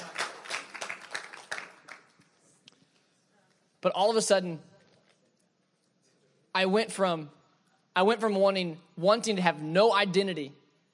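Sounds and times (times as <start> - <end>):
audience applause: 0.0 - 2.2
speech: 3.8 - 4.7, 6.6 - 7.4, 8.0 - 10.6.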